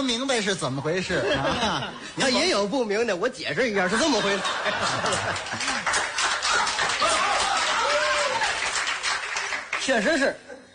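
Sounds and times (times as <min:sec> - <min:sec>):
speech: 0:00.0 - 0:06.0, 0:09.8 - 0:10.5
laughter: 0:01.1 - 0:02.4, 0:03.8 - 0:07.4
audience applause: 0:04.7 - 0:10.2.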